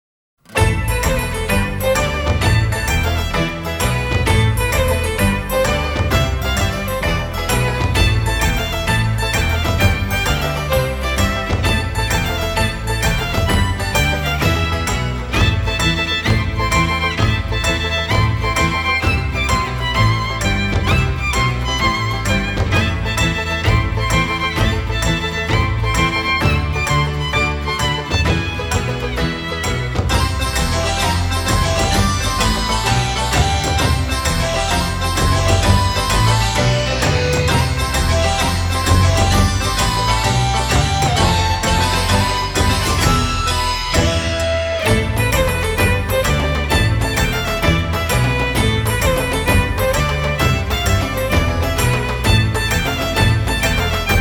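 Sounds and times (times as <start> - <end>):
bazaar ambience: 0.5 - 54.1.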